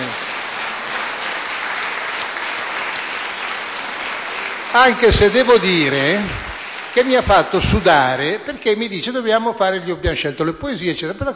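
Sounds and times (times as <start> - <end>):
audience applause: 0.0 - 8.6
speech: 4.7 - 11.3.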